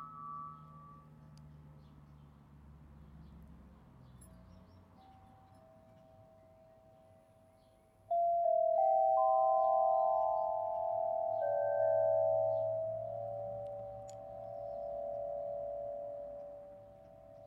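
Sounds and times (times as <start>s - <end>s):
harp: 8.1s - 17.4s.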